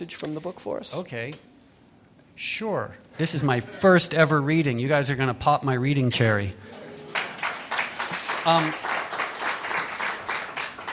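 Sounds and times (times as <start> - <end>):
speech: 0.0 - 1.5, 2.4 - 6.8, 8.4 - 8.9
audience clapping: 7.0 - 10.9.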